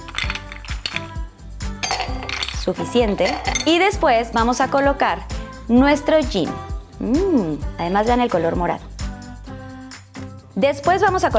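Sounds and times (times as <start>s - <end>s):
ice dropped into balloon glass: 0.0s - 1.2s, 1.8s - 3.8s
speech: 2.7s - 8.9s, 10.6s - 11.3s.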